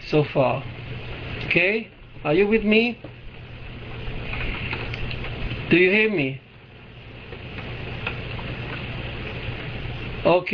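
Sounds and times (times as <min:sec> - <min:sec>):
speech: 0:00.1 - 0:00.8, 0:01.5 - 0:03.2, 0:05.7 - 0:06.4, 0:10.2 - 0:10.5
steady rain: 0:00.4 - 0:10.5.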